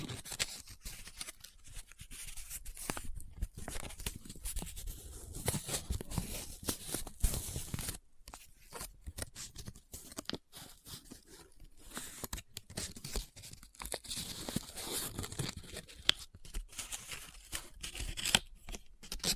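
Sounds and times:
paper folded, rubbed, scratched and crinkled: 0:00.0 - 0:19.3.

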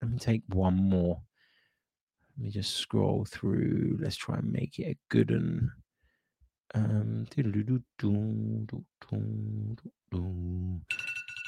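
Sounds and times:
speech: 0:00.2 - 0:01.3, 0:02.4 - 0:05.8, 0:06.7 - 0:11.0
bright higher phone ringing tone: 0:10.9 - 0:11.4.

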